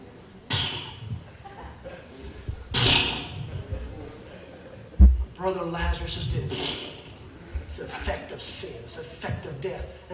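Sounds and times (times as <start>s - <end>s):
man imitating horse snorting: 0.5s - 1.1s, 2.7s - 3.5s, 6.5s - 7.1s
laughter: 1.1s - 2.7s
speech: 5.4s - 6.9s, 7.8s - 10.1s.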